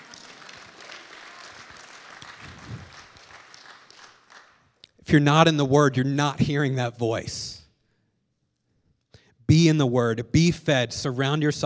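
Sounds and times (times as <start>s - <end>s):
audience clapping: 0.0s - 4.8s
speech: 5.1s - 7.6s, 9.7s - 11.6s.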